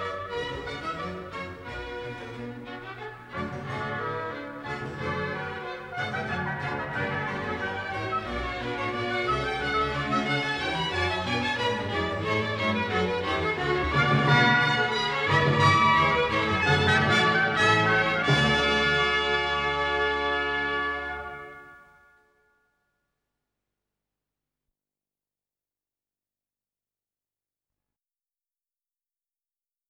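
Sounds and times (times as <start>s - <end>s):
orchestral suite bourree: 0.0s - 22.2s.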